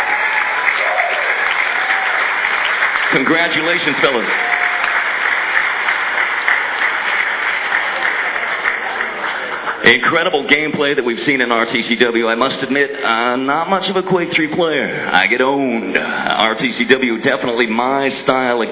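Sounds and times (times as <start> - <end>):
audience applause: 0.0 - 10.7
speech: 3.1 - 4.6, 9.9 - 18.6.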